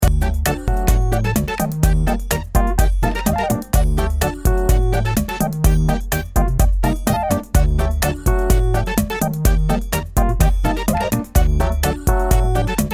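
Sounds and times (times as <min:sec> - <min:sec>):
cool background music loop: 0:00.0 - 0:12.9.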